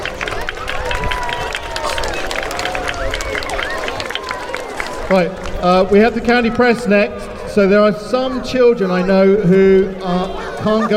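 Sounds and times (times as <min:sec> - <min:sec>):
audience applause: 0:00.0 - 0:05.9
speech: 0:05.1 - 0:10.9.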